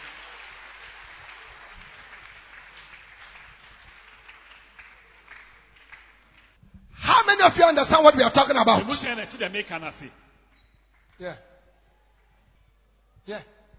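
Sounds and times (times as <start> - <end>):
audience clapping hands: 0.0 - 6.6, 7.6 - 11.4
speech: 7.4 - 10.2, 11.2 - 11.5, 13.2 - 13.6.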